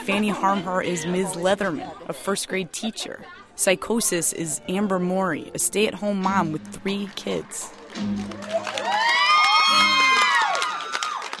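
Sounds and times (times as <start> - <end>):
speech: 0.0 - 8.8
crowd cheering: 7.0 - 11.3.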